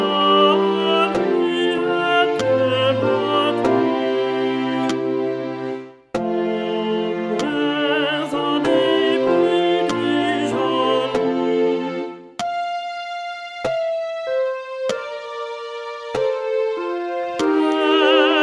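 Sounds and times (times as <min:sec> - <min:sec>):
tenor instrument: 0:00.0 - 0:18.4.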